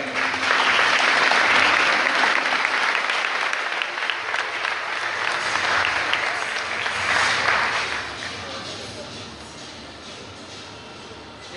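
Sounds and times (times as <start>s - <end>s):
audience applause: 0.0s - 8.8s.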